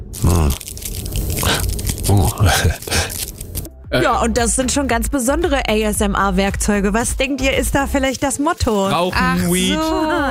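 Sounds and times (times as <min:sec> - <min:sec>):
thin cigarette rolling paper crinkling: 0:00.6 - 0:03.7
speech: 0:02.1 - 0:02.9, 0:03.9 - 0:10.3.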